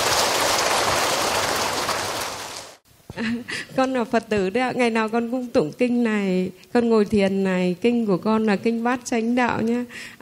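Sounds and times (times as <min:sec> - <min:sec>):
audience applause: 0:00.0 - 0:02.8
speech: 0:03.2 - 0:10.2.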